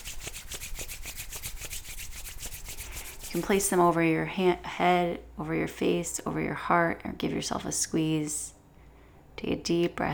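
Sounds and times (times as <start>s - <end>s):
hands rubbing together: 0.0s - 4.0s
speech: 3.3s - 8.5s, 9.4s - 10.1s.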